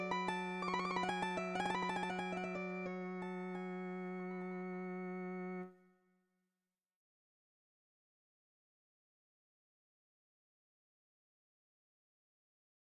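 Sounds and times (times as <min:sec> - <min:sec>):
long melody: 0:00.0 - 0:05.7.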